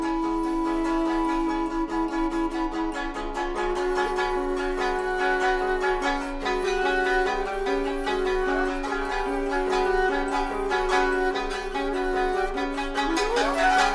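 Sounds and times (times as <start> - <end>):
21-string koto: 0.0 - 13.9
shakuhachi: 0.0 - 13.9
shamisen: 0.0 - 13.9.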